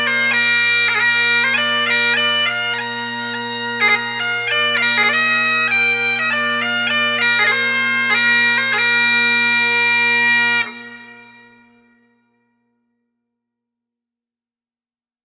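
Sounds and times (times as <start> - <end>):
bagpipe playing: 0.0 - 12.1.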